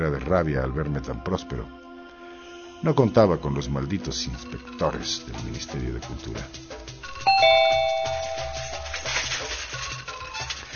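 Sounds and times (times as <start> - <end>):
speech: 0.0 - 1.9, 2.8 - 7.6
doorbell ringing: 7.1 - 9.2.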